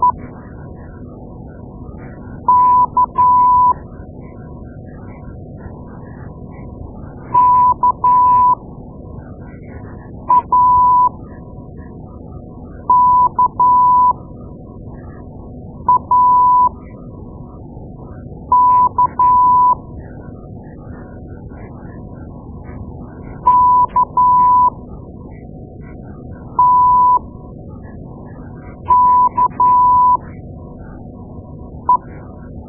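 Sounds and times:
morse code beeps: 2.5 - 3.8, 7.4 - 8.6, 10.3 - 11.1, 12.9 - 14.2, 15.9 - 16.7, 18.5 - 19.8, 23.4 - 24.8, 26.6 - 27.2, 28.8 - 30.2, 31.9 - 32.1.

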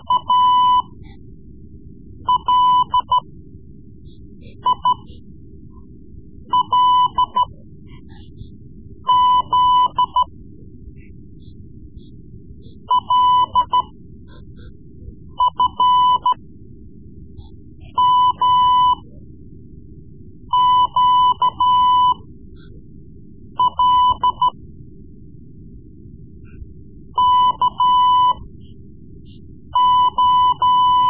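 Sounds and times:
Morse code lessons: 0.0 - 1.0, 2.3 - 3.2, 6.6 - 7.6, 9.1 - 10.3, 12.7 - 13.9, 15.4 - 16.4, 18.0 - 19.1, 20.6 - 22.2, 23.6 - 24.6, 27.2 - 28.4, 29.8 - 31.0.

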